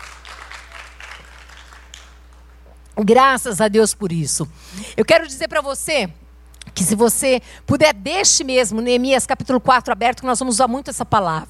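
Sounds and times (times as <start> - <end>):
audience clapping hands: 0.0 - 2.8
speech: 3.0 - 6.2, 6.8 - 11.4.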